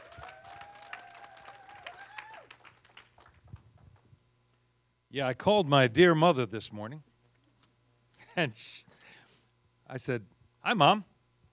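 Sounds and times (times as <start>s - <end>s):
audience clapping: 0.0s - 4.1s
speech: 5.2s - 7.1s, 8.4s - 9.0s, 9.9s - 11.1s.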